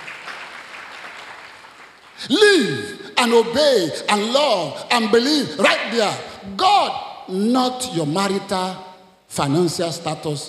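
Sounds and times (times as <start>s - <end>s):
congregation clapping for Jesus during a church sermon: 0.0s - 2.4s
speech: 2.2s - 10.4s.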